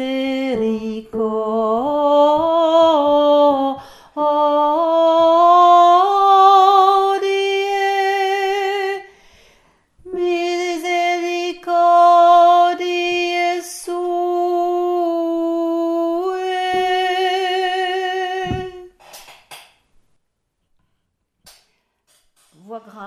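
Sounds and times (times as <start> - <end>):
alto voice singing: 0.0 - 9.1, 10.0 - 19.0.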